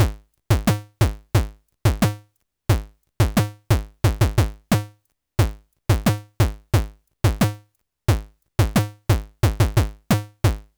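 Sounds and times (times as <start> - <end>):
kick drum: 0.0 - 2.1, 2.7 - 4.8, 5.4 - 10.7.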